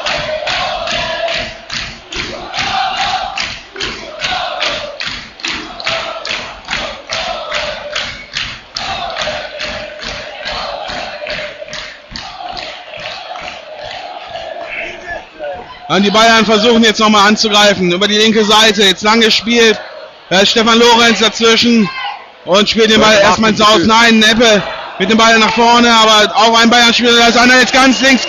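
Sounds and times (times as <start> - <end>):
rapid rhythmic clapping or stomping: 0.0 - 15.7
stadium crowd cheering and chanting: 0.0 - 28.2
speech: 15.9 - 28.2.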